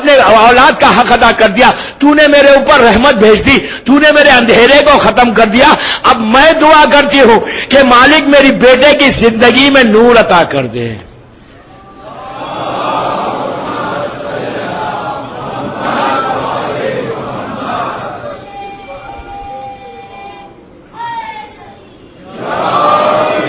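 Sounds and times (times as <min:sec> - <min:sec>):
speech: 0:00.1 - 0:11.1
crowd chanting a religious slogan: 0:12.0 - 0:19.2, 0:22.2 - 0:23.4.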